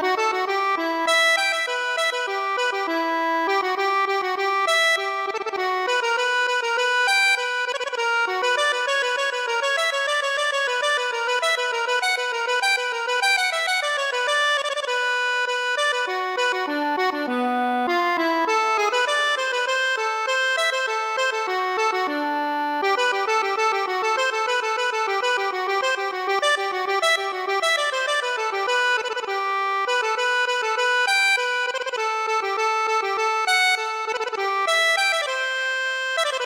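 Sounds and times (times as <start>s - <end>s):
accordion: 0.0s - 36.4s.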